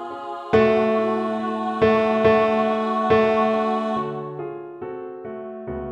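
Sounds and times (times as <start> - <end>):
bass piano accompaniment training score: 0.6 - 5.9.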